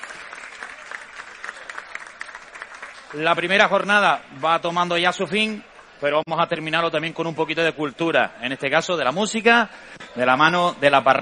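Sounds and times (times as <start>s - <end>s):
audience applause: 0.0s - 4.7s
speech: 3.1s - 11.2s.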